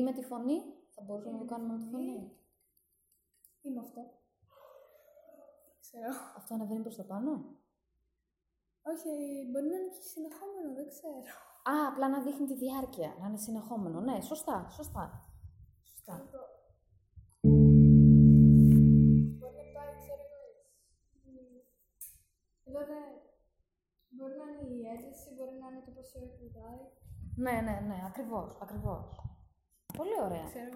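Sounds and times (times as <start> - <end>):
synthesizer experimentation: 17.4 - 20.0.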